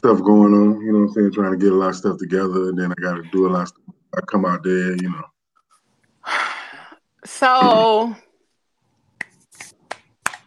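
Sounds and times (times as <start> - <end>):
speech: 0.0 - 5.3, 7.2 - 8.2
single sharp quiet hand clap: 9.2 - 10.4.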